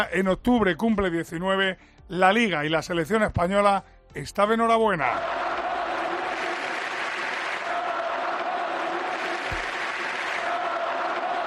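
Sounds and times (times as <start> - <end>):
speech: 0.0 - 5.4
Camp Nou stadium crowd chanting a player's name: 5.1 - 11.4.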